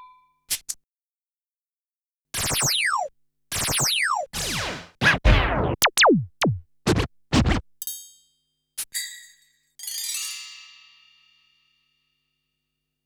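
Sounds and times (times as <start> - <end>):
Yamaha RM1X sequencer music: 2.4 - 7.7.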